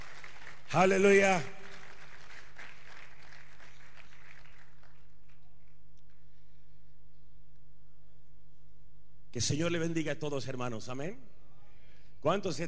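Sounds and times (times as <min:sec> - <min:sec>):
audience applauding: 0:00.0 - 0:05.8
speech: 0:00.7 - 0:01.6, 0:09.3 - 0:11.4, 0:12.2 - 0:12.6.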